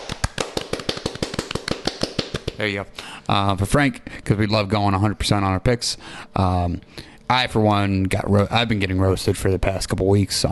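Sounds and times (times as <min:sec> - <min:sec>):
applause: 0:00.0 - 0:02.6
speech: 0:02.6 - 0:10.4.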